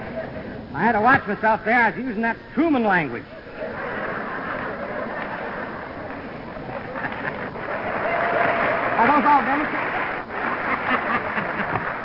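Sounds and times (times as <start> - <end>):
voices and faint laughter: 0.0 - 8.3, 10.2 - 12.0
speech: 0.8 - 3.7
audience applause: 3.6 - 12.0.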